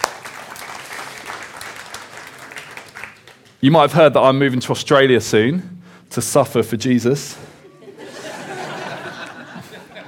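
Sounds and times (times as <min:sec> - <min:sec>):
audience applause: 0:00.0 - 0:03.6
speech: 0:03.6 - 0:07.5
laughter: 0:07.6 - 0:10.0.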